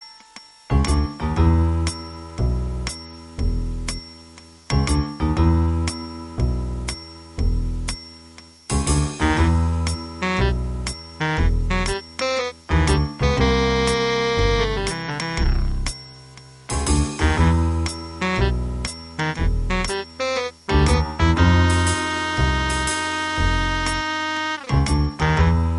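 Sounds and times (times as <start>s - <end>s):
background music: 0.0s - 25.7s.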